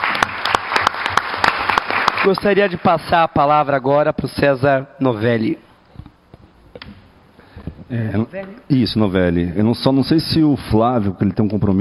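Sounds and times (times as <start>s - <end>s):
audience applause: 0.0s - 2.7s
speech: 2.2s - 5.7s, 7.9s - 11.7s.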